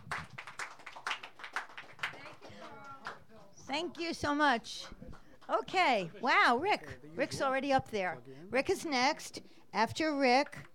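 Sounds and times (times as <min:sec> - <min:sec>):
audience round of applause: 0:00.0 - 0:03.2
speech: 0:03.7 - 0:10.7.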